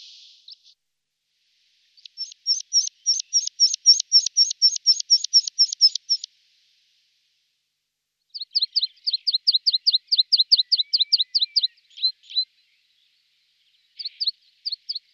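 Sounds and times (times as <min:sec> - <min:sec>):
meadow pipit chirping: 0:02.0 - 0:06.3, 0:08.4 - 0:12.7, 0:13.7 - 0:15.1.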